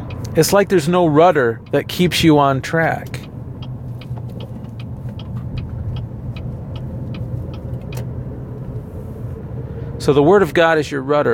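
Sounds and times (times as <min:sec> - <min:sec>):
car engine hum: 0:00.0 - 0:11.3
tire and road rumble: 0:00.0 - 0:11.3
speech: 0:00.4 - 0:03.2, 0:10.0 - 0:11.3
faint ticking clicks: 0:02.8 - 0:08.8.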